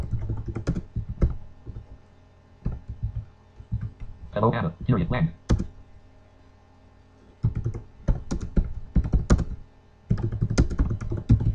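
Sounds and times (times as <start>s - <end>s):
typing on a computer keyboard: 0.0s - 1.8s, 2.6s - 4.1s, 5.5s - 5.7s, 7.4s - 11.5s
speech: 4.4s - 5.7s.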